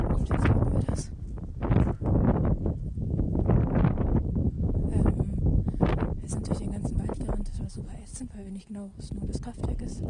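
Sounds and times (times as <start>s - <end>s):
strong wind outdoors: 0.0s - 10.0s
speech: 8.7s - 10.0s.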